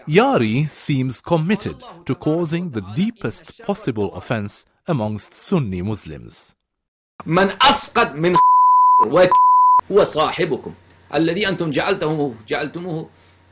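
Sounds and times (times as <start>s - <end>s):
speech: 0.0s - 6.6s, 7.2s - 13.3s
censor bleeps over offensive words: 8.4s - 9.8s.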